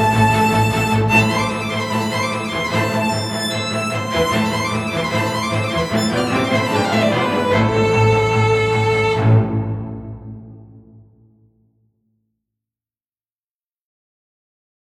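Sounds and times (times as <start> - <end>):
string symphony: 0.0 - 11.0.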